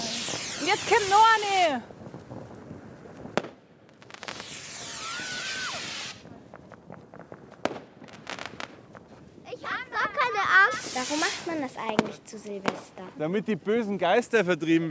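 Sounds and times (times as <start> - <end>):
firework rocket whooshing upward with rising hissing whistle: 0.0 - 1.8, 4.0 - 6.3, 10.6 - 12.1
sharp loud firework bangs outdoors: 0.0 - 13.2
speech: 0.7 - 1.9, 11.5 - 14.9.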